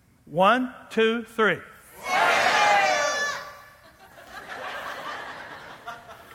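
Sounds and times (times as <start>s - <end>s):
speech: 0.3s - 1.7s
audience screaming: 2.0s - 3.5s
laughter: 3.8s - 6.3s.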